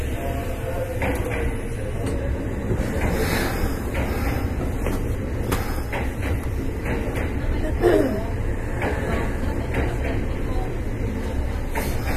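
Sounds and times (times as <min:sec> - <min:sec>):
express train on the Nara Line running: 0:00.0 - 0:12.1.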